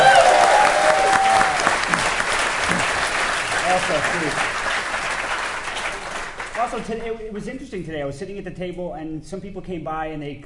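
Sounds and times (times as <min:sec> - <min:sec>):
audience applause: 0:00.0 - 0:07.2
speech: 0:03.9 - 0:04.6, 0:06.7 - 0:10.4.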